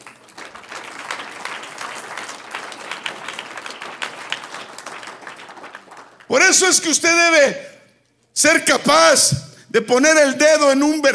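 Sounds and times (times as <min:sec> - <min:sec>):
audience applause: 0:00.0 - 0:06.3
speech: 0:06.3 - 0:07.7, 0:08.4 - 0:11.1.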